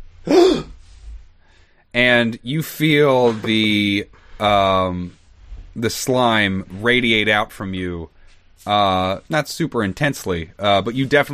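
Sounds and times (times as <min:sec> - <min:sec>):
loud gasp: 0:00.3 - 0:00.8
speech: 0:02.0 - 0:05.2, 0:05.8 - 0:11.3.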